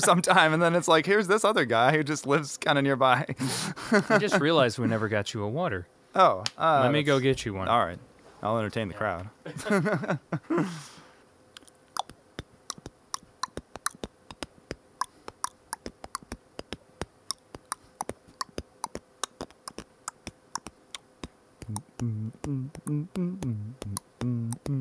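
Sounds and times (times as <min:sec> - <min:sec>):
laughter: 0:00.0 - 0:00.3, 0:03.1 - 0:05.1, 0:09.5 - 0:10.8
speech: 0:00.0 - 0:10.9, 0:22.5 - 0:24.0
breathy beatbox burst: 0:10.5 - 0:11.2
beatboxing mouth clicks and pops: 0:11.5 - 0:24.8.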